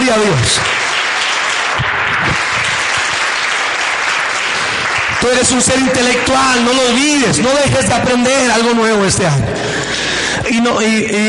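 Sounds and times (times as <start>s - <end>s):
audience applause: 0.0s - 8.8s
speech: 0.1s - 0.8s, 5.2s - 11.2s.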